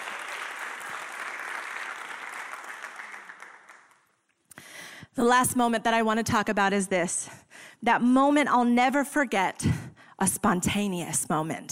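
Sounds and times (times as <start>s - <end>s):
audience applause: 0.0s - 4.1s
speech: 5.2s - 11.7s.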